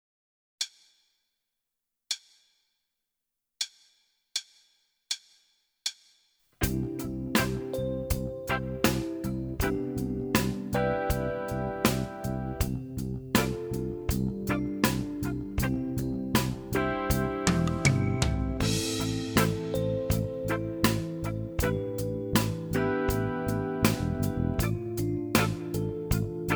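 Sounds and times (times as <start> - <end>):
rock drum pattern in eighth notes: 6.6 - 26.5.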